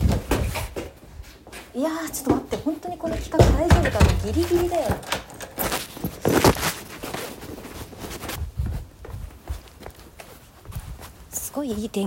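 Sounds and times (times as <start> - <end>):
footsteps scuffing and crunching on an outdoor walk: 0.0 - 12.0
noisy background: 0.0 - 12.0
speech: 1.8 - 5.2, 11.6 - 12.0.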